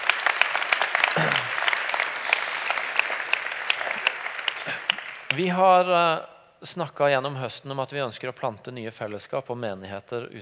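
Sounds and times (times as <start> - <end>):
audience applauding: 0.0 - 5.6
speech: 5.4 - 10.4.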